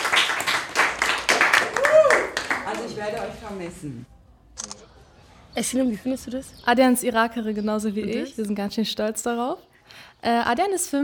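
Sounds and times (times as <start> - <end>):
applause: 0.0 - 3.3
speech: 3.0 - 4.7, 5.6 - 11.0.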